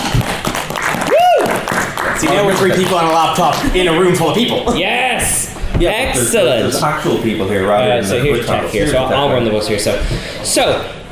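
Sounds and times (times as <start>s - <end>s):
audience applause: 0.0s - 4.3s
speech: 2.2s - 11.1s.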